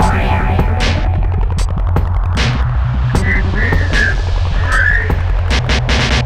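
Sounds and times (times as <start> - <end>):
hardcore breakbeat in F minor: 0.0 - 6.2.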